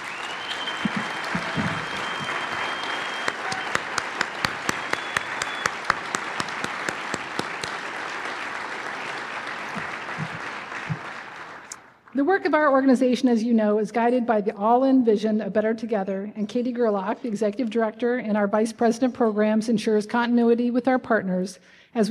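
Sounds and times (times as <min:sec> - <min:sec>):
audience applause: 0:00.0 - 0:12.0
speech: 0:12.3 - 0:22.1.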